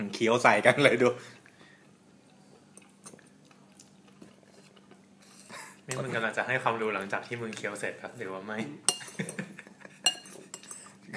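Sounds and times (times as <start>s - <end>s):
speech: 0.0s - 1.4s, 5.9s - 9.4s
cutlery and dishes clinking during a meal: 8.9s - 10.9s.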